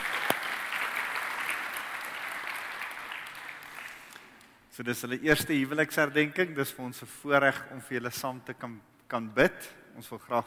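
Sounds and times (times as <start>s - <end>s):
audience applauding: 0.0s - 4.5s
speech: 4.8s - 10.4s.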